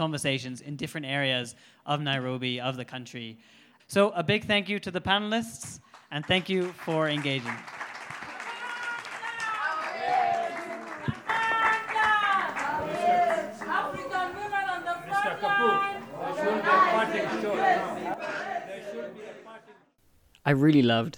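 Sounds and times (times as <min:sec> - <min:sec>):
speech: 0:00.0 - 0:07.8, 0:20.4 - 0:21.1
scattered shouts: 0:08.4 - 0:19.7
members of social justice centers chanting together in Nairobi: 0:09.6 - 0:20.0
overlapping chatter: 0:09.9 - 0:19.9.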